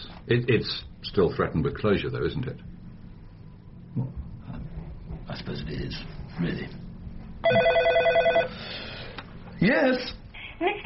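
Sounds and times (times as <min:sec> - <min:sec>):
speech: 0:00.2 - 0:02.7, 0:05.3 - 0:06.8, 0:07.4 - 0:07.8, 0:09.6 - 0:10.8
telephone ringing electronically: 0:07.4 - 0:08.6.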